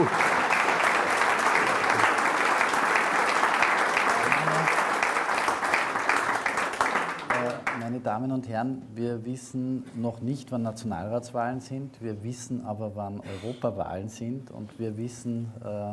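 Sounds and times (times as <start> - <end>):
speech: 0.0 - 0.2, 8.1 - 15.9
sustained audience applause: 0.0 - 7.8.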